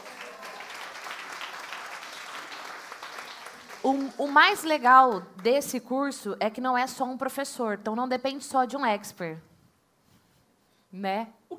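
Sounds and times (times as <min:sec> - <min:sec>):
applause: 0:00.0 - 0:05.6
speech: 0:03.8 - 0:09.5, 0:10.9 - 0:11.4.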